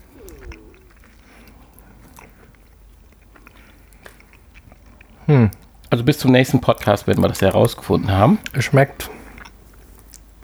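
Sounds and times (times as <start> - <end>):
low hum: 0.0 - 10.4
person chewing milk chocolate with hazelnut pieces: 0.0 - 10.4
speech: 5.3 - 9.2.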